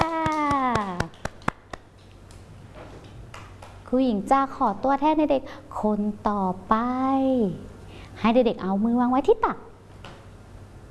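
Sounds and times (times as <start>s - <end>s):
children clapping hands: 0.0s - 2.4s
speech: 3.9s - 9.7s.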